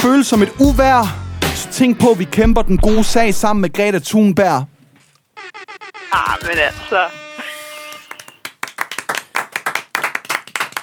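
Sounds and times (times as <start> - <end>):
speech: 0.1 - 4.7, 5.5 - 7.2
people clapping in the studio: 7.9 - 10.8.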